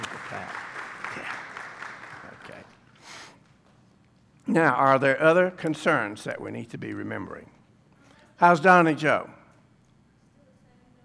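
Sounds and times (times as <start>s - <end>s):
audience clapping: 0.0s - 3.0s
speech: 4.5s - 7.6s, 8.4s - 9.4s.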